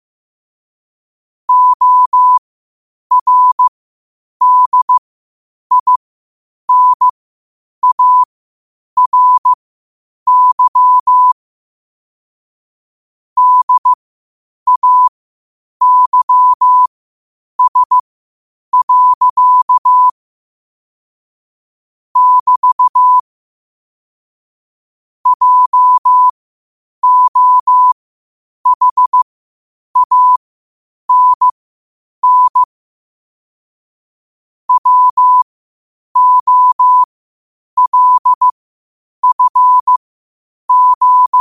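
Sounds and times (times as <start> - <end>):
morse code at 5 wpm: 1.5 - 2.4, 3.1 - 3.7, 4.4 - 5.0, 5.7 - 6.0, 6.7 - 7.1, 7.8 - 8.3, 9.0 - 9.6, 10.3 - 11.4, 13.4 - 14.0, 14.7 - 15.1, 15.8 - 16.9, 17.6 - 18.0, 18.7 - 20.2, 22.2 - 23.2, 25.3 - 26.3, 27.0 - 28.0, 28.6 - 29.2, 30.0 - 30.4, 31.1 - 31.6, 32.2 - 32.7, 34.7 - 35.5, 36.2 - 37.1, 37.8 - 38.5, 39.2 - 40.0, 40.7 - 41.3.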